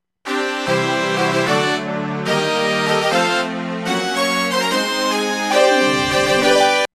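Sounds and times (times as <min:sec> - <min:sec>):
fanfare: 0:00.3 - 0:06.9.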